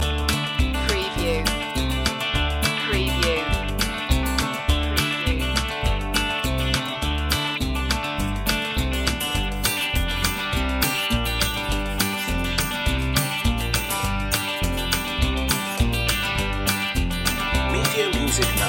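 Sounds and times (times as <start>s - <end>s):
ozark stomp loop: 0.0s - 18.6s.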